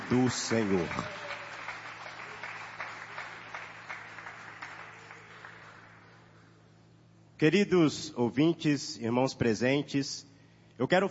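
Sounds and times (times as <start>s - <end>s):
audience applause: 0.0s - 6.2s
low steady hum: 0.0s - 11.0s
speech: 0.1s - 1.4s, 7.4s - 11.0s.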